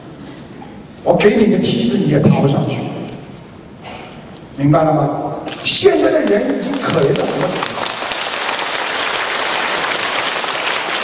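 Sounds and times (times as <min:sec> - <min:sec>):
speech: 0:01.0 - 0:03.0, 0:04.6 - 0:07.8
audience applause: 0:06.2 - 0:11.0.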